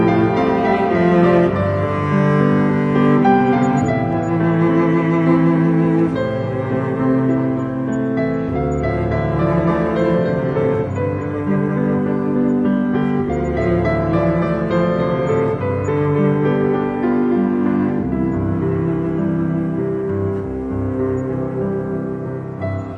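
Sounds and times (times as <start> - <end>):
cello: 0.0 - 22.9
piano: 0.0 - 22.9.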